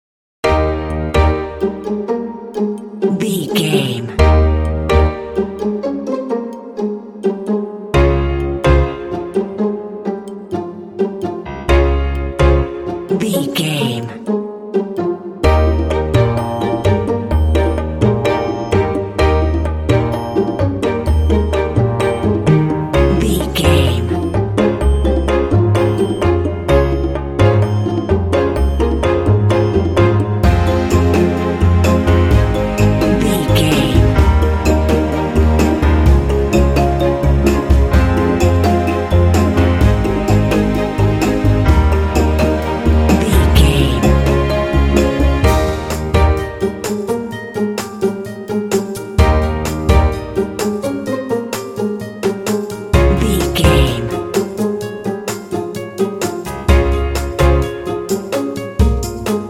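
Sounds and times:
curious quirky dramedy underscore music: 0.4 - 59.4.

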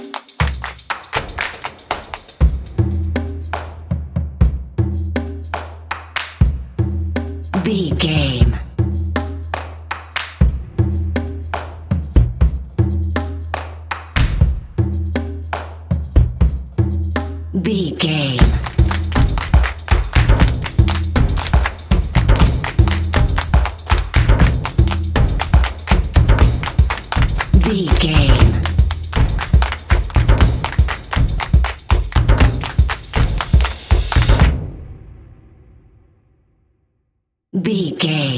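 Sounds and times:
handclaps: 0.0 - 2.7, 5.5 - 6.5, 9.5 - 10.5, 11.5 - 11.8, 13.5 - 14.4, 15.5 - 15.8, 18.4 - 34.6
drums: 0.0 - 35.7.

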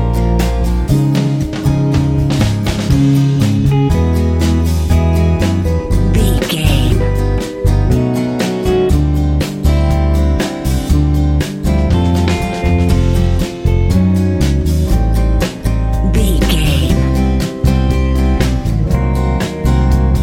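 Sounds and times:
hot powerful medium-tempo new wave rock music: 0.0 - 20.2.

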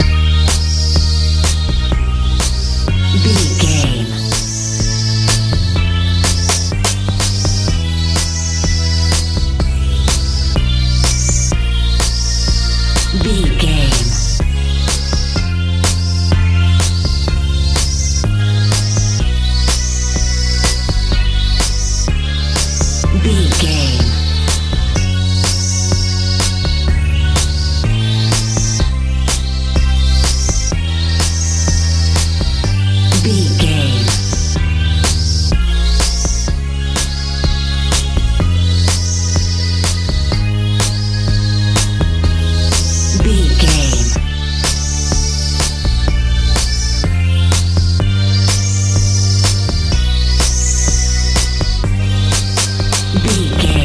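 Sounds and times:
house music: 0.0 - 53.8.

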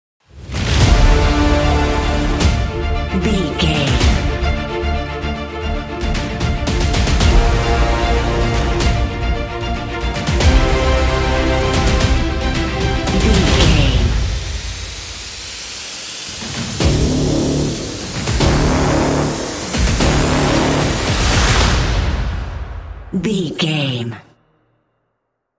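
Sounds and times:
epic trailer intro ident: 0.2 - 23.2.

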